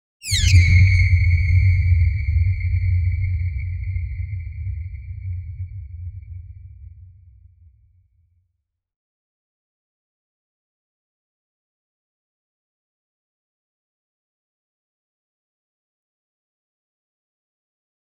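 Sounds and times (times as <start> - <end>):
giant sci-fi space port portal: 0.2 - 5.2.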